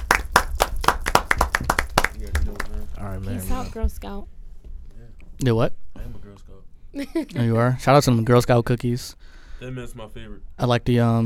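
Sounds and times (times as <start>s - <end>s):
people clapping: 0.0s - 3.2s
speech: 3.1s - 4.4s, 5.4s - 11.2s.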